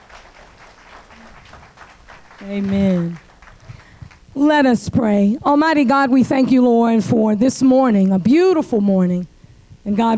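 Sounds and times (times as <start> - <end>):
church congregation clapping in praise during a service: 0.0 - 4.3
speech: 2.4 - 3.3, 4.4 - 10.1.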